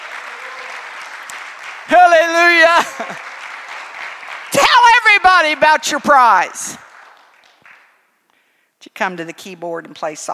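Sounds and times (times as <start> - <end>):
audience clapping: 0.0 - 8.2
speech: 2.6 - 3.3, 5.2 - 6.9, 8.9 - 10.3.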